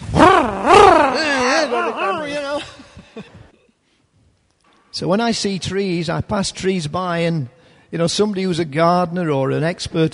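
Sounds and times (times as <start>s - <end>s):
person imitating a chainsaw revving: 0.1s - 2.4s
speech: 5.0s - 10.1s.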